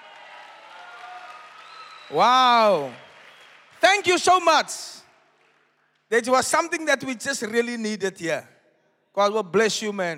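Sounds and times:
audience clapping for a guest: 0.0 - 6.4
speech: 2.1 - 3.0, 3.8 - 5.0, 6.1 - 8.5, 9.2 - 10.1.

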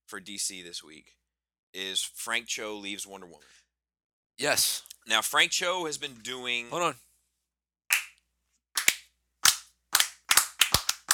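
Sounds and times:
speech: 0.1 - 3.6, 4.4 - 7.1
hand clapping: 7.9 - 8.2, 8.8 - 11.1.

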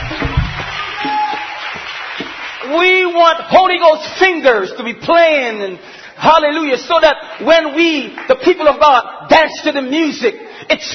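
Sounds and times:
audience clapping: 0.0 - 3.5, 6.4 - 8.9
speech: 2.7 - 10.9.

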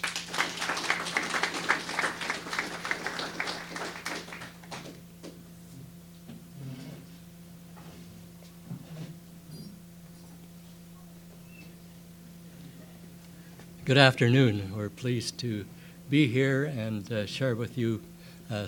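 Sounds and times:
audience clapping welcoming two speakers at a public talk: 0.0 - 5.0
speech: 13.9 - 18.6.

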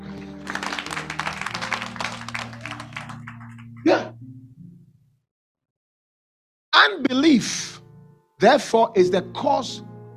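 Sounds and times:
audience clapping: 0.0 - 3.9
speech: 3.8 - 4.2, 6.8 - 7.7, 8.4 - 9.9.

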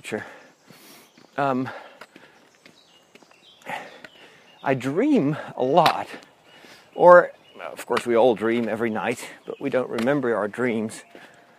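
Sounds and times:
footsteps of a walker climbing uphill on a pilgrim road: 0.0 - 11.5
speech: 0.1 - 0.4, 1.4 - 1.9, 4.6 - 6.3, 7.0 - 11.3.

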